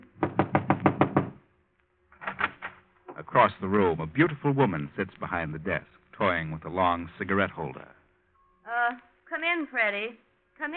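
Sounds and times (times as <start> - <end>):
firm knocking on a wooden office door: 0.2 - 1.4
speech: 3.4 - 8.0, 8.9 - 10.7.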